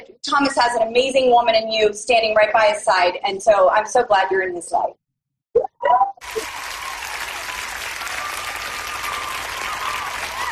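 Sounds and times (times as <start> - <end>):
speech: 0.2 - 5.0
audience applause: 6.2 - 10.5.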